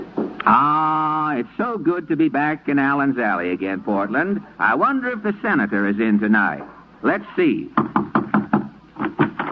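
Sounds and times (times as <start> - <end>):
speech: 0.5 - 8.6
knocking on a wooden door: 7.8 - 9.5.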